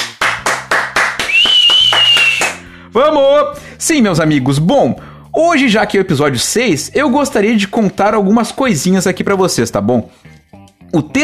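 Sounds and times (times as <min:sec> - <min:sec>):
hand clapping: 0:00.0 - 0:02.7
speech: 0:03.0 - 0:11.2.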